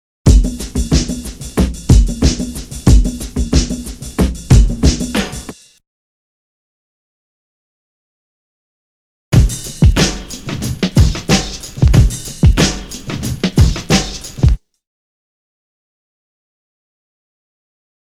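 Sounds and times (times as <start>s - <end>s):
drum loop: 0.3s - 5.8s, 9.3s - 14.6s.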